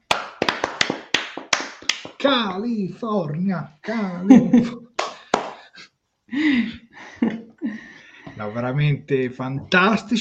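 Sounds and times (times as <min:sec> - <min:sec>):
scattered sharp crisp claps: 0:00.0 - 0:02.7, 0:05.0 - 0:05.7
speech: 0:02.2 - 0:04.8, 0:08.4 - 0:10.1
laughter: 0:03.9 - 0:05.8, 0:06.4 - 0:08.4.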